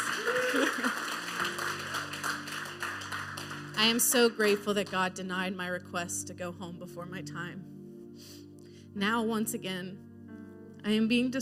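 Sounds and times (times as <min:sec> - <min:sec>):
audience clapping: 0:00.0 - 0:04.9
speech: 0:03.8 - 0:07.8, 0:09.0 - 0:10.1, 0:10.8 - 0:11.4.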